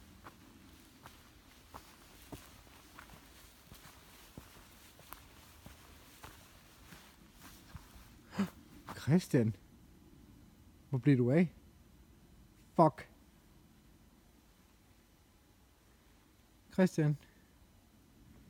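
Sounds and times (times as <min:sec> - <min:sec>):
footsteps walking through a forest in the Harz: 0:00.0 - 0:09.2
speech: 0:09.1 - 0:09.6, 0:10.9 - 0:11.6, 0:12.8 - 0:13.1, 0:16.8 - 0:17.3.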